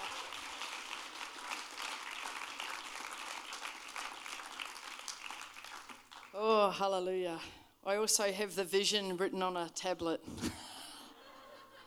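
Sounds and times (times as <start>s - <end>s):
audience applause: 0.0s - 6.3s
speech: 6.4s - 10.6s
laughter: 11.1s - 11.8s.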